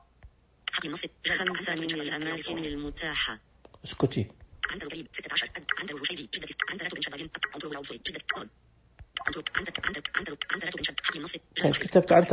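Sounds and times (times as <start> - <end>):
speech: 0.8 - 8.6, 9.3 - 12.3
keyboard typing as place names are entered: 4.6 - 8.5, 9.1 - 12.0.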